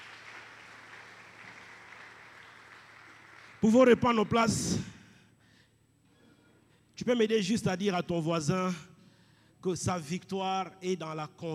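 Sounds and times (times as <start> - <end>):
congregation applauding during a French-language church service: 0.0 - 4.8
speech: 3.6 - 4.9, 7.1 - 8.9, 9.6 - 11.5.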